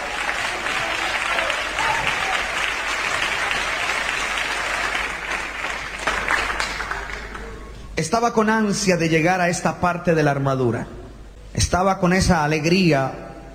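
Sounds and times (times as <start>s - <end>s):
audience applauding: 0.0s - 7.8s
speech: 8.0s - 11.0s, 11.6s - 13.2s.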